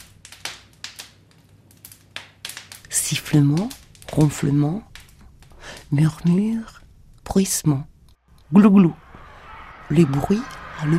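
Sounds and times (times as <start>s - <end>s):
freshly baked bread crust crackling: 0.0s - 8.1s
speech: 3.0s - 4.9s, 5.9s - 7.9s, 8.5s - 9.0s, 9.9s - 10.9s
laughter: 8.9s - 10.9s.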